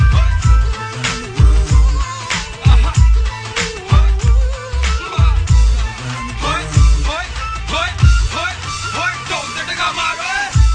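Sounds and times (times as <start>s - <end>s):
Punjabi dhol drumming: 0.0s - 8.3s.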